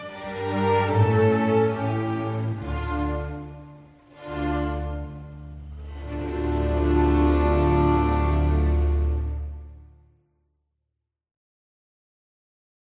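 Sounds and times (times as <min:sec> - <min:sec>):
violin concerto music: 0:00.0 - 0:10.0.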